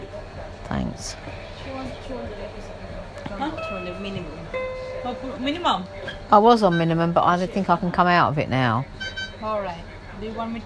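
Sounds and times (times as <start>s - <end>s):
speech: 0.7s - 10.6s
electronic alarm ringing: 3.6s - 7.4s, 8.9s - 9.7s.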